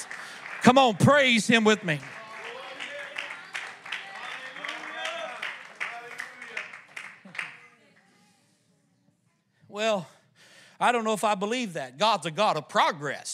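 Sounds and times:
audience clapping hands in worship: 0.0 - 7.8
speech: 0.6 - 2.1, 9.8 - 10.2, 10.8 - 13.3.

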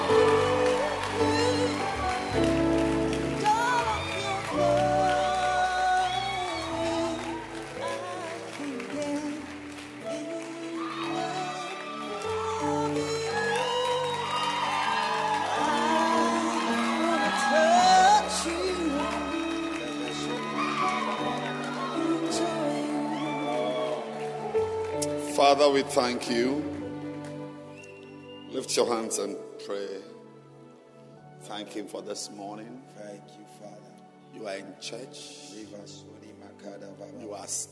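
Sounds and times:
audience clapping and cheering: 0.0 - 28.9
speech: 25.5 - 26.8, 28.7 - 30.2, 31.5 - 37.7.

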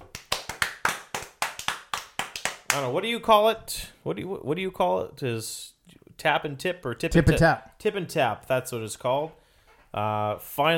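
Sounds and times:
hand clapping: 0.0 - 3.0
speech: 2.8 - 10.7.

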